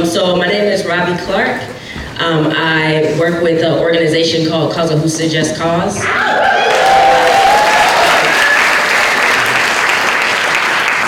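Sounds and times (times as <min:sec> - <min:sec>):
speech: 0:00.0 - 0:06.6
audience clapping: 0:06.4 - 0:11.0.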